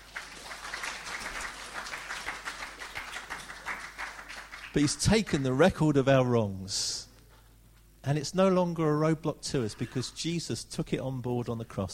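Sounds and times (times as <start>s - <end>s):
audience applause: 0.0s - 5.5s
speech: 4.7s - 7.1s, 8.0s - 11.9s.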